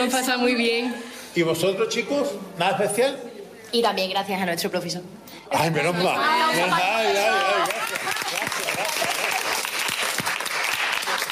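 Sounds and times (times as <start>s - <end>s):
speech: 0.0s - 8.0s
applause: 7.6s - 11.3s.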